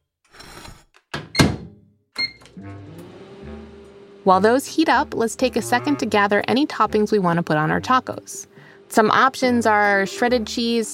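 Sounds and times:
microwave oven humming: 2.2 - 5.0
speech: 2.6 - 3.0, 4.2 - 10.9.

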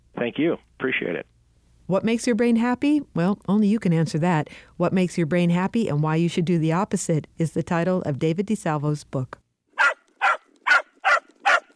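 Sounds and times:
speech: 0.2 - 1.3, 1.9 - 9.4
dog barking: 9.8 - 11.7.

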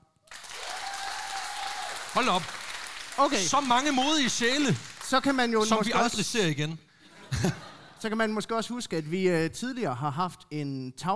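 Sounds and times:
audience clapping: 0.3 - 6.6
speech: 2.2 - 2.6, 3.2 - 11.1
laughter: 7.0 - 8.4.

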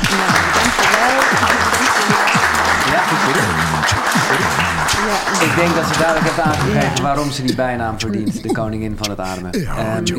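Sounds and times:
audience applause welcoming a guest: 0.0 - 7.4
laughter: 0.0 - 10.1
speech: 5.6 - 10.1.

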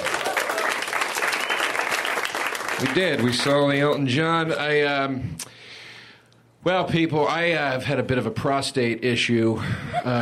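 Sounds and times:
audience applause for a performer: 0.0 - 3.7
speech: 2.8 - 5.6, 6.6 - 10.2.

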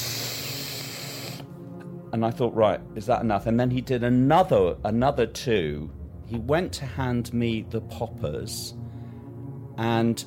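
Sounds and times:
person imitating a huge sniff up the nostrils: 0.0 - 1.5
speech: 2.1 - 8.8, 9.8 - 10.2.

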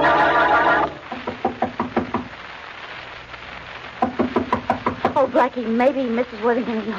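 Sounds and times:
knocking on a door: 1.1 - 2.3, 4.0 - 5.2
speech: 5.4 - 6.9.

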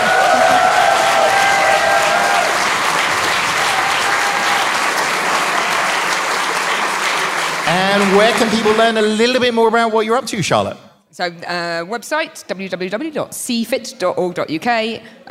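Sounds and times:
round of applause: 0.0 - 9.5
speech: 8.0 - 15.2.

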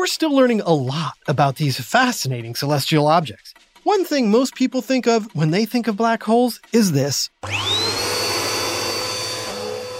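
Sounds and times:
speech: 0.0 - 8.0
vacuum cleaner sucking up chocolate-frosted donut crumbs: 7.4 - 9.9.

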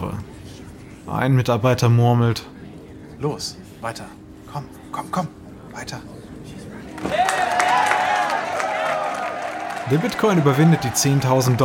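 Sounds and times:
speech: 1.1 - 2.6, 3.2 - 6.2, 7.0 - 7.8, 9.9 - 11.6
office staff cheering: 7.0 - 11.6
office staff clapping: 7.0 - 11.6.

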